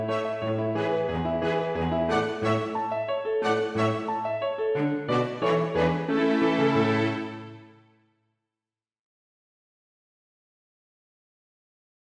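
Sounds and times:
two violins, cello and piano playing a rigadoon: 0.0s - 7.8s.

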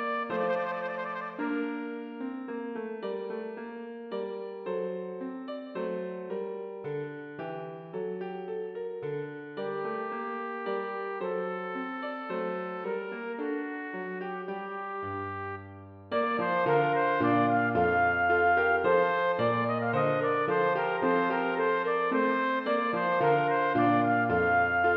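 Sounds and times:
trumpet playing a minuet: 0.0s - 2.3s, 9.6s - 24.9s
piano: 0.0s - 24.9s.

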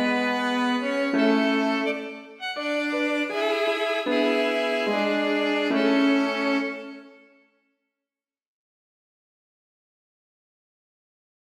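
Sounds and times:
melody for violin, cello and piano: 0.0s - 7.1s.

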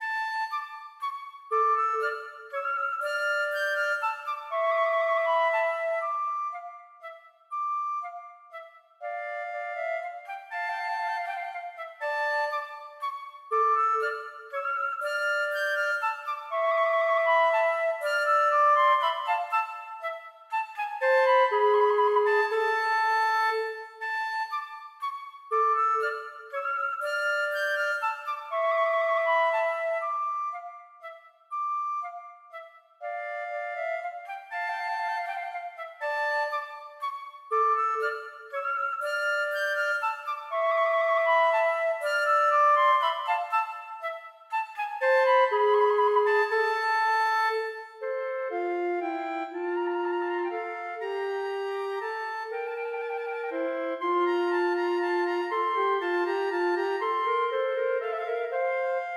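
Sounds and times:
minuet for flute duet: 0.0s - 59.1s.

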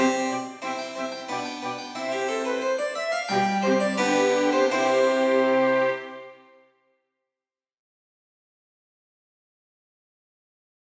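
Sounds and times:
harpsichord: 0.0s - 6.4s
cello: 0.0s - 6.6s
flute: 0.0s - 6.6s
violin: 0.0s - 6.6s.

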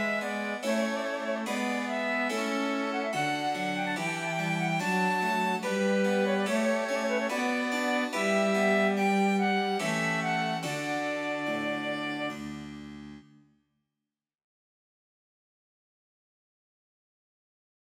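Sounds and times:
minuet for flute violin cello and harpsichord: 0.0s - 13.2s.

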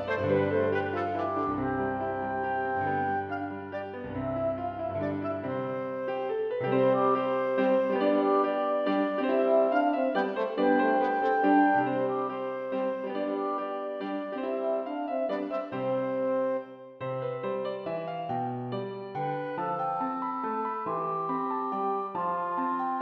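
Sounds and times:
minuet for clarinet, horn and piano: 0.0s - 23.0s.

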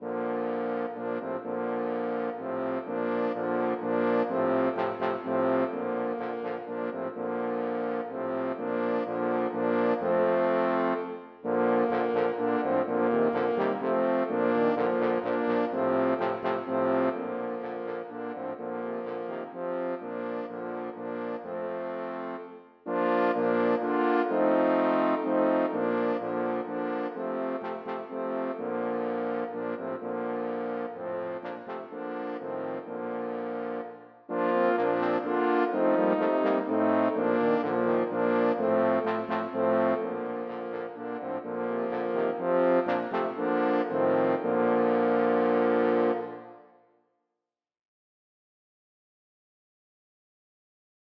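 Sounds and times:
four trombones playing a duet arrangement: 0.0s - 46.5s.

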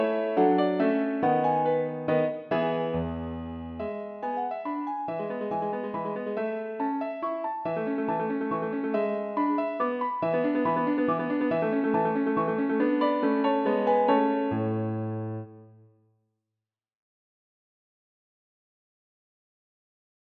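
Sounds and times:
piano minuet: 0.0s - 15.9s.

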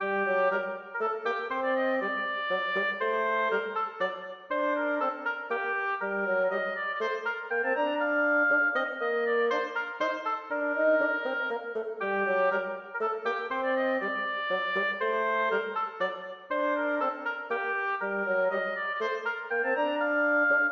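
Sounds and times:
oboe and bassoon playing a minuet: 0.0s - 20.7s.

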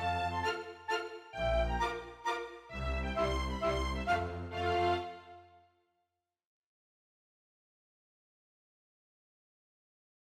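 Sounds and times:
polka mazurka music: 0.0s - 5.5s.

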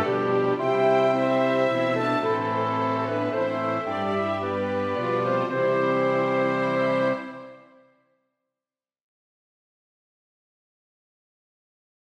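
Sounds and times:
large ensemble playing an aria: 0.0s - 7.8s.

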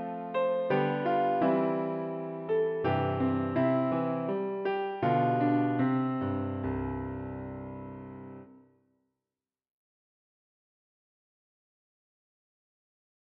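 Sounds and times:
piano: 0.0s - 8.8s.

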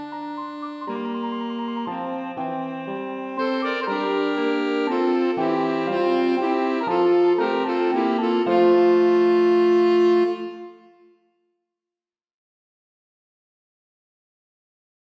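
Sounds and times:
piano: 0.0s - 10.9s
two alto saxophones playing a minuet: 0.0s - 11.2s.

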